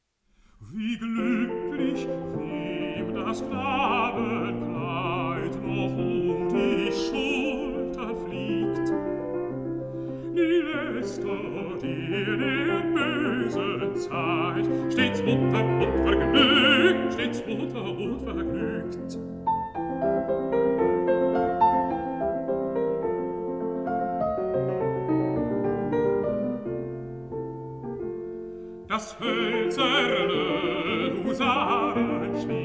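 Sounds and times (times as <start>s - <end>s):
piano: 0.0s - 32.6s
person singing: 0.6s - 9.5s, 10.1s - 19.3s, 28.9s - 32.6s.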